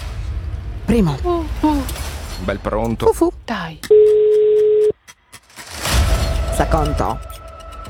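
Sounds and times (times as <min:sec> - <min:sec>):
speech: 0:00.9 - 0:01.9, 0:02.4 - 0:04.4, 0:06.6 - 0:07.4
phone line ringing tone: 0:03.9 - 0:04.9.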